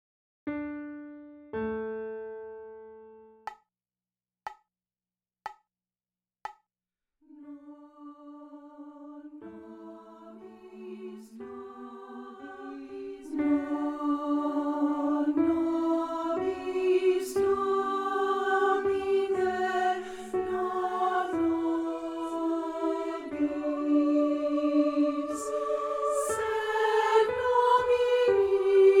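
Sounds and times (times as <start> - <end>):
soprano voice: 7.3 - 28.9.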